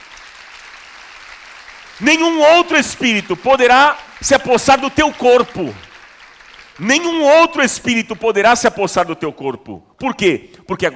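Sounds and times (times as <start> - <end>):
audience applause: 0.0 - 8.3
speech: 2.0 - 5.9, 6.8 - 10.9.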